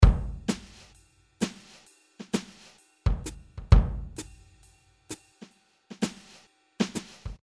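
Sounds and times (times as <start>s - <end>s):
jazz music: 0.0s - 7.4s.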